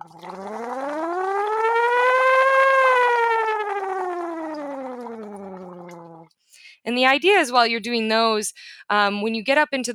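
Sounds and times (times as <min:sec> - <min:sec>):
hummed voice pitch glide: 0:00.0 - 0:06.3
water bubbles: 0:00.0 - 0:06.3
speech: 0:06.9 - 0:09.9.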